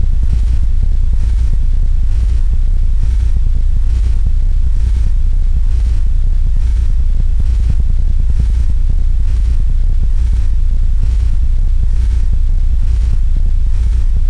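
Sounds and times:
rumble: 0:00.0 - 0:14.2.

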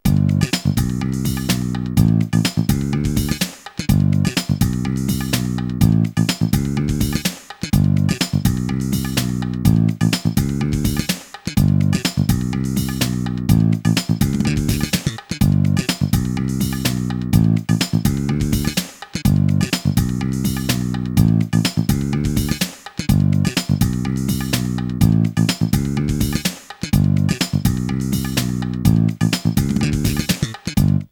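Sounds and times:
funk music: 0:00.0 - 0:31.1.

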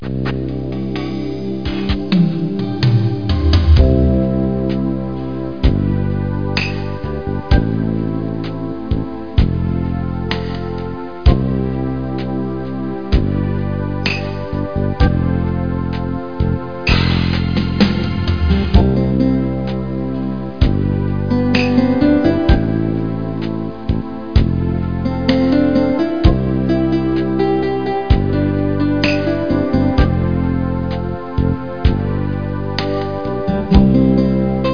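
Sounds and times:
blues music: 0:00.0 - 0:34.7.

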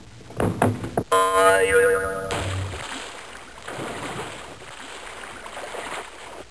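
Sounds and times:
diving board boing: 0:01.0 - 0:03.0
water splash: 0:01.7 - 0:06.5.

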